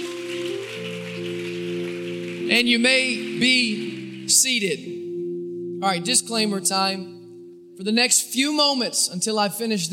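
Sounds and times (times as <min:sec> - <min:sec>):
audience clapping: 0:00.0 - 0:04.9
sustained keyboard chords: 0:00.0 - 0:09.5
speech: 0:02.5 - 0:05.0, 0:05.8 - 0:07.2, 0:07.8 - 0:09.9.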